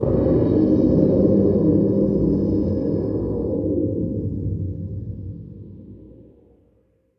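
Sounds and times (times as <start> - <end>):
atmospheric visual effects sounds: 0.0 - 6.2.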